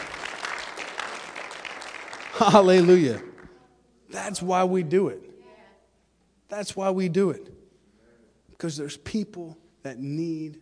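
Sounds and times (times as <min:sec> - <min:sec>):
audience applause: 0:00.0 - 0:03.5
speech: 0:02.4 - 0:03.3, 0:04.1 - 0:05.3, 0:06.5 - 0:07.6, 0:08.6 - 0:10.6.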